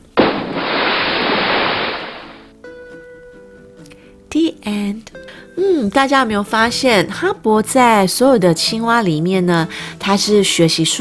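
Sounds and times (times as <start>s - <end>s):
incoming cannon shell explosions: 0.0s - 2.5s
speech: 4.6s - 11.0s.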